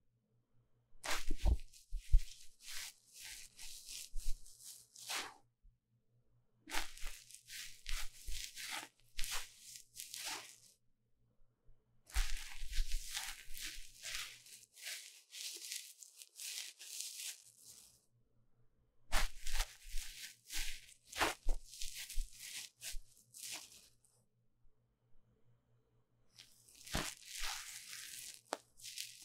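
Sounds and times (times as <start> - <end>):
ear cleaning scratching on a microphone: 1.1 - 5.4, 6.7 - 10.7, 12.1 - 18.0, 19.1 - 23.9, 26.5 - 29.2.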